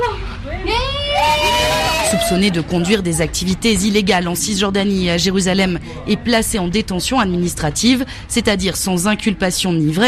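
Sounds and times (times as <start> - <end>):
low murmur of noise: 0.0 - 10.0
excited high-pitched cries of surprise at homecoming: 0.7 - 2.7
speech: 2.2 - 10.0.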